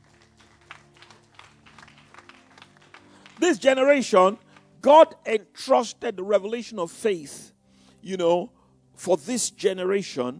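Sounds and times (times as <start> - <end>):
audience clapping: 0.0 - 4.8
speech: 3.4 - 10.3.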